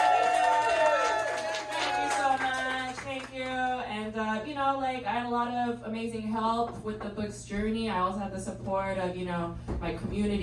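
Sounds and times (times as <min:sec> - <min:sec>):
audience cheering at a live event: 0:00.0 - 0:02.9
applause at a live event: 0:00.0 - 0:03.8
speech: 0:04.6 - 0:10.4.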